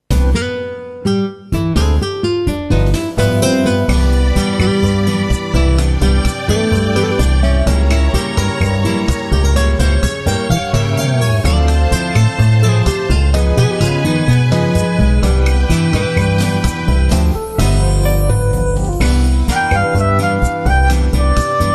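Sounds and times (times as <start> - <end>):
bossa nova background music: 0.1 - 21.7.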